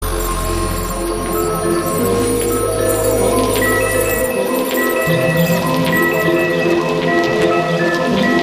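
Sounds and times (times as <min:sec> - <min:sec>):
ambient music mix: 0:00.0 - 0:08.3.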